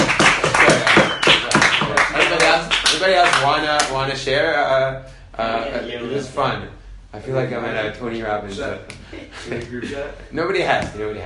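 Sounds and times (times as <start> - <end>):
small group clapping: 0.0 - 4.0
speech: 3.0 - 11.2.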